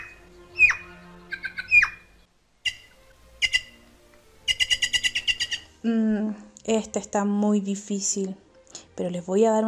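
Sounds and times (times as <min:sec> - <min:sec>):
magpie squawking and chattering: 0:00.0 - 0:03.8, 0:04.4 - 0:05.7
speech: 0:05.8 - 0:08.4, 0:09.0 - 0:09.6.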